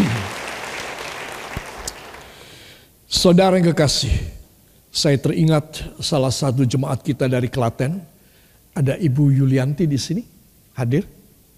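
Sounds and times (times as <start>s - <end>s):
crowd audience applause: 0.0s - 2.5s
speech: 3.2s - 4.4s, 5.0s - 8.1s, 8.8s - 11.2s.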